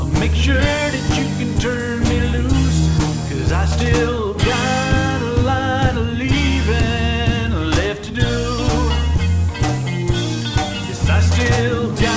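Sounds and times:
country band playing: 0.0s - 12.1s.

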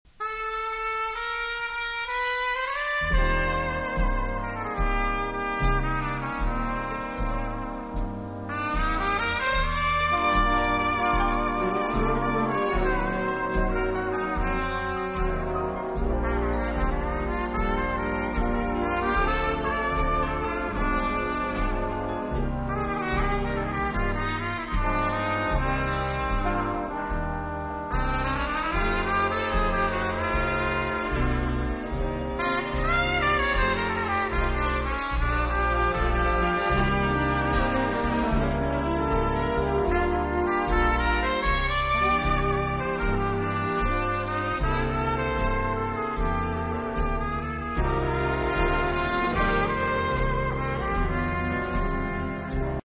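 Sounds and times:
big band: 0.1s - 52.8s.

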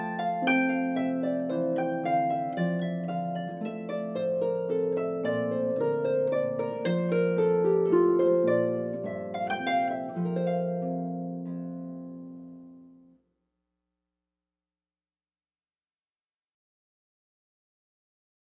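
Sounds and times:
harp piece in F: 0.0s - 13.2s.

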